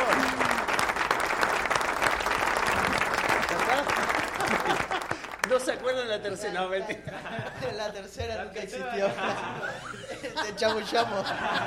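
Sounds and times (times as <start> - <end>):
audience applause: 0.0 - 5.7
laughter: 3.8 - 5.4, 6.6 - 11.6
speech: 5.8 - 11.6.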